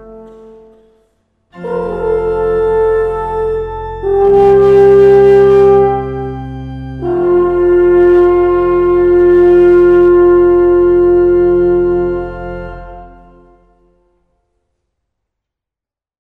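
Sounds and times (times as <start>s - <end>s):
alphorn signal: 1.6s - 14.0s.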